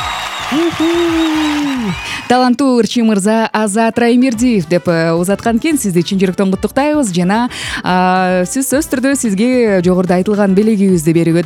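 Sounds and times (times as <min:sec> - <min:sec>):
clapping and crowd noise for a prize winner: 0:00.0 - 0:02.3
speech: 0:00.5 - 0:11.4.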